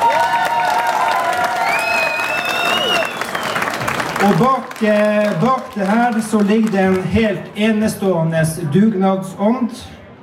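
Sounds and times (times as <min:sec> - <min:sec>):
people cheering: 0:00.0 - 0:06.6
crowd clapping: 0:00.0 - 0:07.3
speech: 0:04.2 - 0:10.0.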